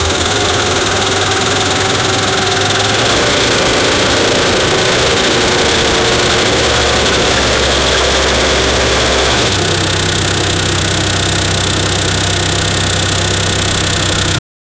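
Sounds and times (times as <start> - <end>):
automotive engine firing non stop: 0.0 - 14.4.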